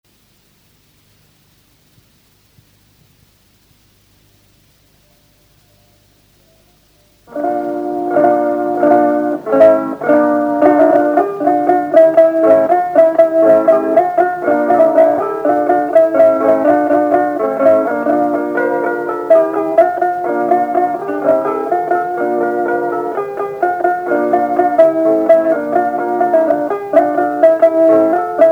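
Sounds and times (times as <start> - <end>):
kannel playing folk polka: 7.3 - 28.5.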